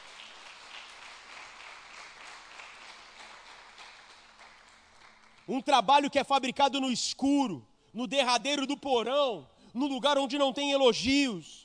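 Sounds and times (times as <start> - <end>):
audience applauding: 0.0 - 5.5
speech: 5.5 - 11.6.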